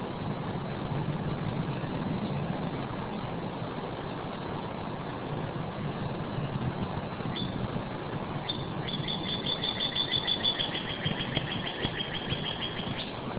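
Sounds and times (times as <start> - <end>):
steady low rumbling noise: 0.0 - 13.3
Northern cardinal whistles: 8.4 - 13.2.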